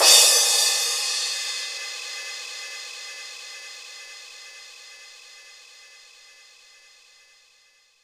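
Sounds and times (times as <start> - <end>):
Roland JV-2080 crash cymbal: 0.0 - 4.8.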